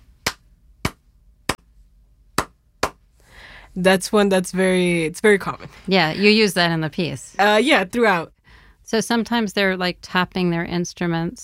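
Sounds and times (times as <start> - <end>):
hand claps in a clave rhythm: 0.2 - 1.7, 2.4 - 3.0
speech: 3.7 - 11.4.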